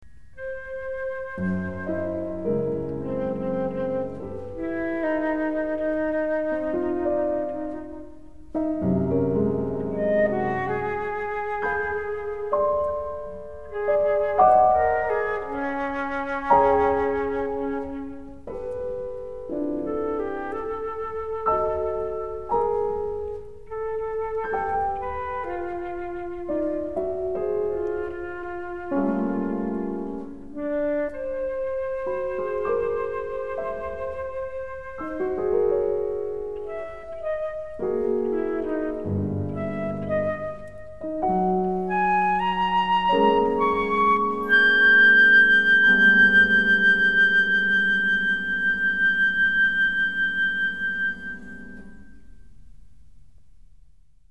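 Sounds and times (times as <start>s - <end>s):
flute music by Swiss composers: 0.2s - 52.4s.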